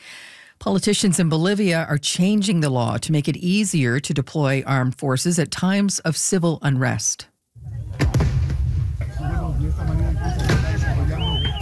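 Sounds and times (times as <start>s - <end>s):
speech: 0.6s - 7.3s
sharp loud bangs: 7.9s - 9.5s, 10.3s - 11.6s
people shouting in a noisy outdoor crowd: 9.0s - 11.6s.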